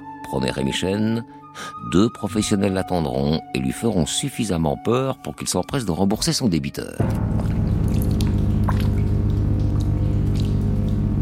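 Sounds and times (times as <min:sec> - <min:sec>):
speech: 0:00.3 - 0:07.7
steady low droning hum: 0:07.0 - 0:11.2
water dripping inside a cave: 0:07.0 - 0:11.2.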